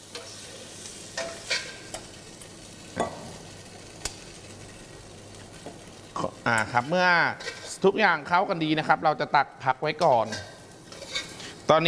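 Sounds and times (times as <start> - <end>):
shrimp sizzling in a pan: 0.0 - 8.8, 10.2 - 11.8
speech: 6.5 - 10.5, 11.7 - 11.8
utensil stirring and scraping a pan: 7.3 - 7.8, 10.2 - 11.6.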